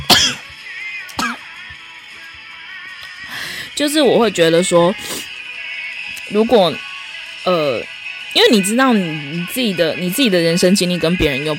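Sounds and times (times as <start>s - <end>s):
person sneezing: 0.0s - 0.5s
speech: 3.8s - 5.1s, 6.3s - 6.8s, 7.4s - 11.5s.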